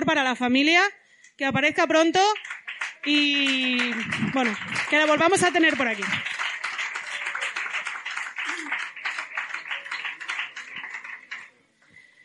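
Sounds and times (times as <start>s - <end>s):
speech: 0.0s - 6.3s
audience applause: 2.4s - 11.6s.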